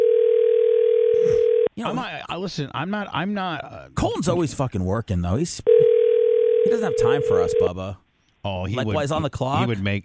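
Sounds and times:
telephone dial tone: 0:00.0 - 0:01.7
speech: 0:01.8 - 0:05.8, 0:06.6 - 0:10.0.

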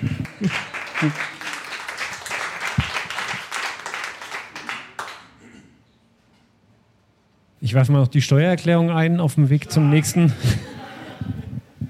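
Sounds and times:
laughter: 0:00.0 - 0:01.6, 0:09.7 - 0:11.8
applause: 0:00.0 - 0:05.4
speech: 0:00.4 - 0:01.3, 0:07.7 - 0:10.7.

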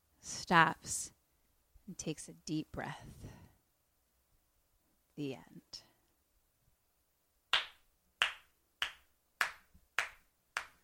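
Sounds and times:
speech: 0:00.2 - 0:01.2, 0:01.9 - 0:03.4, 0:05.2 - 0:05.9
slow hand claps: 0:07.5 - 0:10.8.

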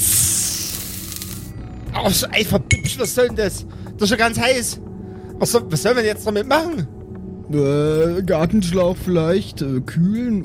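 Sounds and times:
soft hiss from opened jar: 0:00.0 - 0:01.5
speech: 0:02.0 - 0:06.9, 0:07.5 - 0:10.4.

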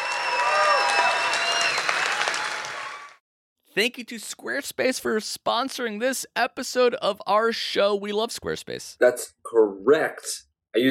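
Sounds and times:
studio audience round of applause: 0:00.0 - 0:03.2
speech: 0:03.8 - 0:10.8.

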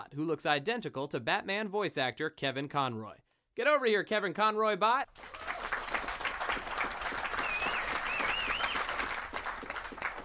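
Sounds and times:
speech: 0:00.0 - 0:05.6
applause sound effect: 0:05.1 - 0:10.2.

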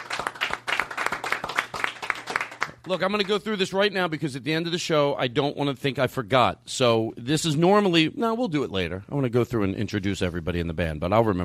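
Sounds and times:
audience applause for a band: 0:00.0 - 0:02.9
speech: 0:02.8 - 0:11.4.

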